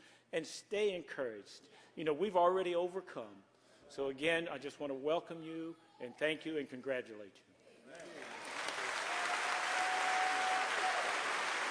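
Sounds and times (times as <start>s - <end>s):
speech: 0.3s - 8.3s
audience clapping: 7.9s - 11.6s.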